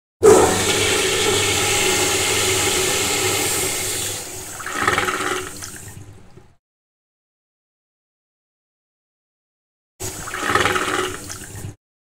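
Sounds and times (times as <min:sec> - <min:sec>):
toilet flushing: 0:00.2 - 0:06.6, 0:10.0 - 0:11.8.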